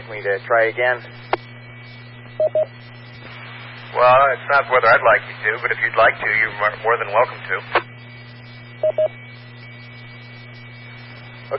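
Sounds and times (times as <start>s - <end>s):
low hum: 0.0s - 11.5s
speech: 0.1s - 1.2s, 2.4s - 3.3s, 3.9s - 7.9s, 8.8s - 9.2s
DTMF keypad tones from a radio accessing autopatch: 2.4s - 2.7s, 8.8s - 9.1s.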